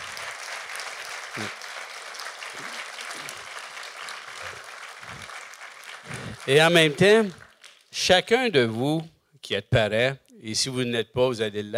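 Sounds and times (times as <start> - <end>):
audience applause: 0.0 - 8.0
speech: 1.4 - 1.6, 6.5 - 7.4, 8.0 - 11.7.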